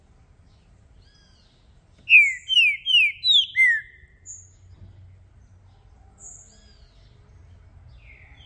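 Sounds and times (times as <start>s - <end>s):
green-winged saltator singing descending whistles: 2.0s - 4.5s.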